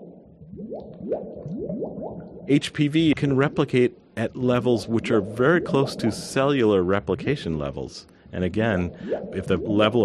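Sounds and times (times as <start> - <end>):
bubbly bloop sound effect: 0.0 - 7.5, 8.6 - 10.0
speech: 0.8 - 10.0.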